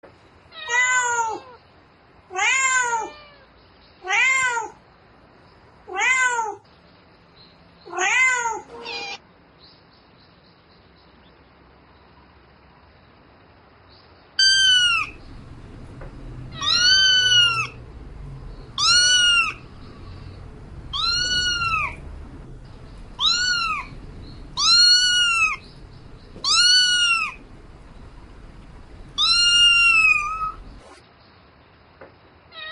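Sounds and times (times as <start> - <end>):
cat meowing calling its mate: 0.5 - 1.6, 2.3 - 4.8, 5.9 - 6.6, 7.9 - 9.2, 14.4 - 30.8.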